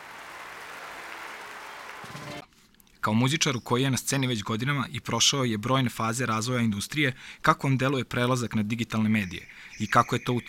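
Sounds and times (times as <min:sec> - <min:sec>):
audience applause greeting an introduced guest: 0:00.0 - 0:02.4
speech: 0:03.0 - 0:10.4.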